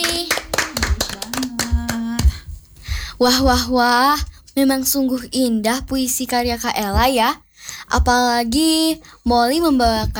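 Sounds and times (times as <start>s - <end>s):
audience clapping: 0.0s - 2.4s
speech: 3.2s - 10.1s.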